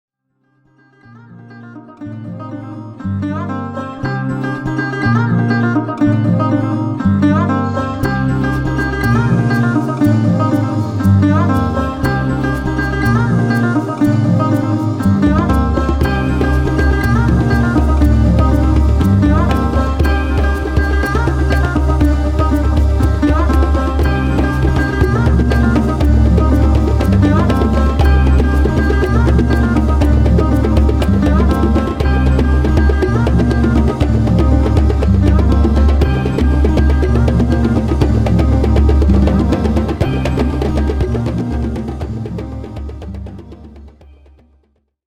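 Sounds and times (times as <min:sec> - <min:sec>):
indigenous groove music: 0:01.8 - 0:44.8.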